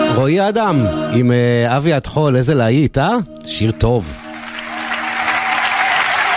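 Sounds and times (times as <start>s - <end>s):
speech: 0.3s - 4.3s
audience applause: 4.2s - 6.3s.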